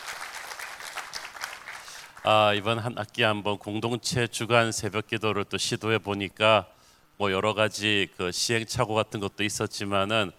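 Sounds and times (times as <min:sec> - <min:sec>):
church congregation applauding at an early-morning prayer service: 0:00.0 - 0:02.3
speech: 0:02.2 - 0:10.3.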